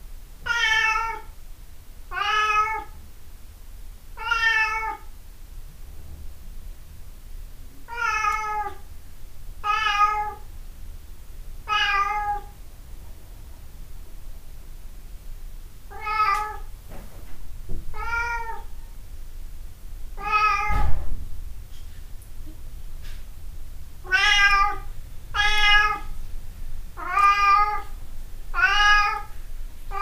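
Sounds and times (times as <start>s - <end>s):
cat meowing: 0.4s - 1.3s, 2.1s - 2.9s, 4.2s - 5.1s, 7.9s - 8.8s, 9.6s - 10.4s, 11.7s - 12.6s, 15.9s - 16.7s, 17.9s - 18.7s, 20.2s - 20.9s, 24.0s - 26.1s, 27.0s - 29.3s
thump: 16.9s - 18.0s, 20.7s - 21.4s.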